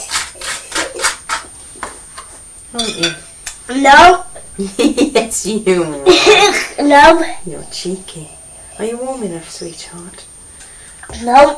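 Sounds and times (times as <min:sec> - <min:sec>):
speech: 0:02.7 - 0:10.3, 0:11.1 - 0:11.5
child clinking a glass of lemonade: 0:02.8 - 0:03.4.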